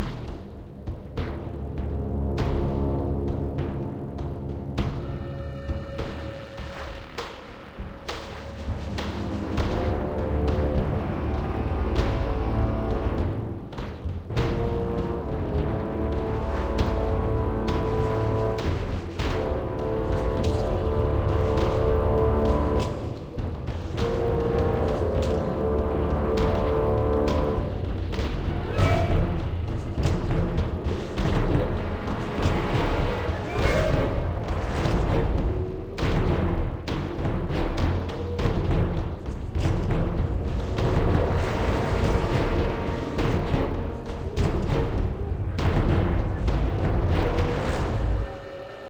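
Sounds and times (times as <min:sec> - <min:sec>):
ambient music: 0:00.0 - 0:48.8.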